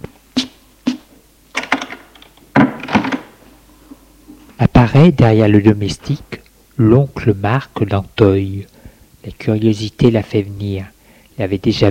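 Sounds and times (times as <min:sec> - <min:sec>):
door being shut: 0:01.6 - 0:03.4
speech: 0:04.9 - 0:11.8.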